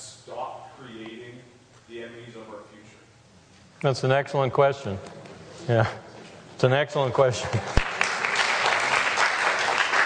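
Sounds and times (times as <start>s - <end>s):
speech: 1.9s - 3.0s, 3.8s - 6.0s, 6.6s - 7.8s
audience applause: 7.5s - 10.0s.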